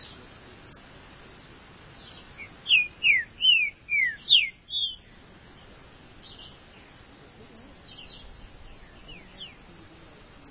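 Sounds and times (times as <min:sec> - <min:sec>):
light background hiss: 0:00.0 - 0:10.4
Green-winged saltator whistling downward-slurred notes: 0:02.4 - 0:05.0.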